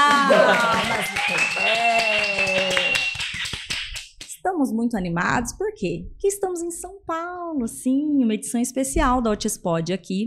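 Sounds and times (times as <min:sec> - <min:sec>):
laughter: 0:00.0 - 0:03.0
round of applause: 0:00.0 - 0:04.2
speech: 0:00.3 - 0:00.9, 0:04.7 - 0:10.2.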